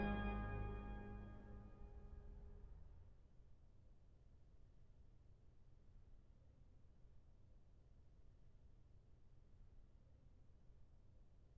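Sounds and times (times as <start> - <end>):
organ concerto in G allegro: 0.0 - 1.6.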